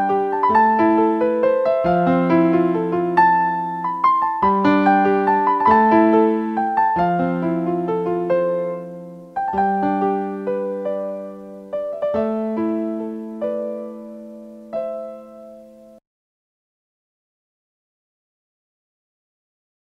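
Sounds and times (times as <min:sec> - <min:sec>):
instrumental music: 0:00.0 - 0:16.0.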